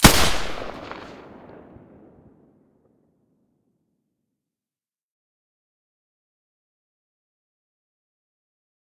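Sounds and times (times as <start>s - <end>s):
G36 firing with silencer in stereo: 0.0s - 1.7s.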